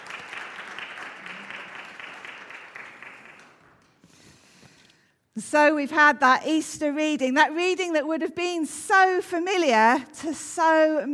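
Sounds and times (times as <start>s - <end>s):
audience clapping: 0.0s - 4.5s
speech: 5.4s - 11.1s.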